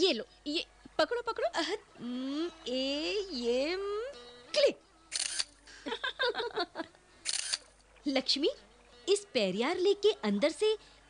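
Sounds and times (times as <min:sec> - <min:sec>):
speech: 0:00.0 - 0:05.2, 0:05.8 - 0:06.9, 0:08.0 - 0:10.9
camera shutter clicks: 0:05.1 - 0:05.6, 0:07.2 - 0:07.8
laughter: 0:05.8 - 0:07.0.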